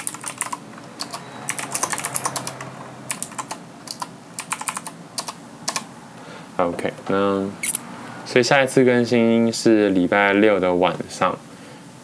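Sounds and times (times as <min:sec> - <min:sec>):
typing on a mechanical keyboard: 0:00.0 - 0:05.9
speech: 0:06.6 - 0:07.7, 0:08.3 - 0:11.5.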